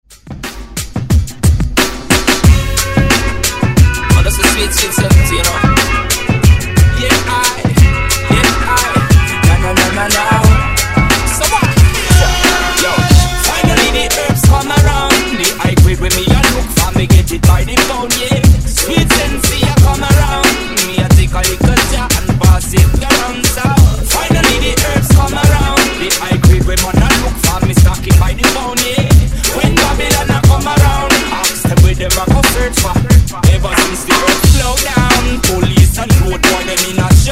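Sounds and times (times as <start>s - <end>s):
reggae music: 0.1s - 37.2s.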